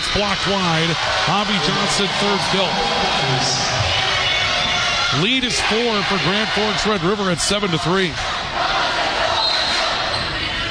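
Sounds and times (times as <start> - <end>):
crowd cheering at a Grand Forks Red River volleyball match: 0.0 - 10.6
speech: 0.2 - 4.0, 5.2 - 8.3.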